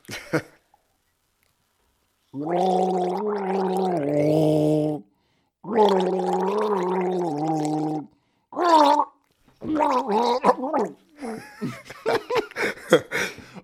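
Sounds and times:
speech: 0.3s - 0.5s
person gargling the melody of a carol after a sip of tea: 2.3s - 11.6s
laughter: 11.2s - 13.6s.

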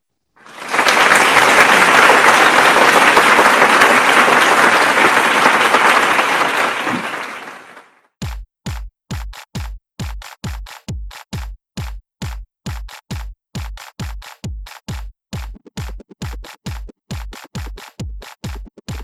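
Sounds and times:
large crowd applause: 0.4s - 8.0s.

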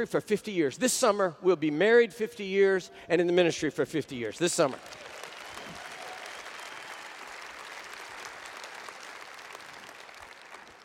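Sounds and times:
speech: 0.0s - 5.1s
audience applause: 4.6s - 10.8s.

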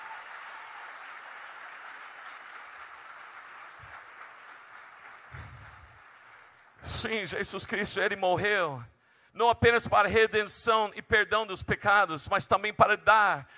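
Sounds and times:
crowd clapping: 0.0s - 7.1s
speech: 6.9s - 13.5s.

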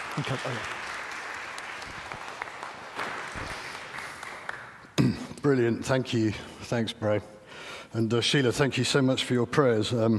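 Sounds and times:
audience round of applause: 0.0s - 4.8s
speech: 0.2s - 0.8s, 5.0s - 10.1s.

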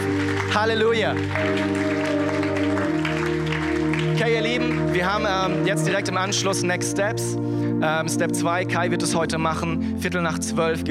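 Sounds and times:
crowd clapping in a large room: 0.0s - 6.3s
sustained keyboard chords: 0.0s - 10.8s
speech: 0.5s - 2.2s, 4.2s - 10.8s.

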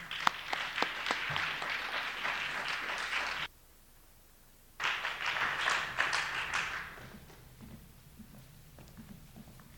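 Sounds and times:
audience applauding to welcome speakers at a writers' talk event: 0.0s - 3.5s, 4.8s - 7.4s.

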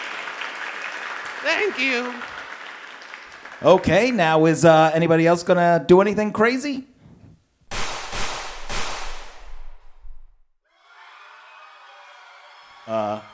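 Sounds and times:
speech: 1.4s - 2.3s, 3.6s - 6.9s
gunshots at a comedy awards show: 7.7s - 10.3s.

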